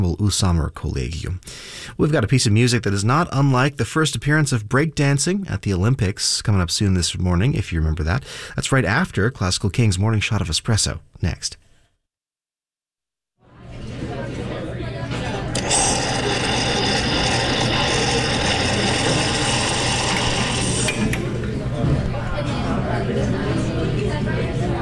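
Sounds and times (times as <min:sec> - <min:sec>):
speech: 0:00.0 - 0:11.6
murmur of indistinct chatter in a cafe: 0:13.5 - 0:24.8
espresso machine running in a cafe: 0:15.6 - 0:21.2.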